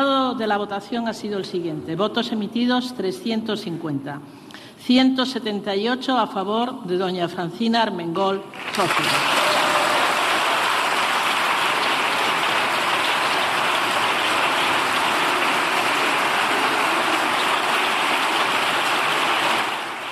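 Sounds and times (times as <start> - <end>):
speech: 0.3 - 9.4
applause from parliament benches: 8.5 - 20.1.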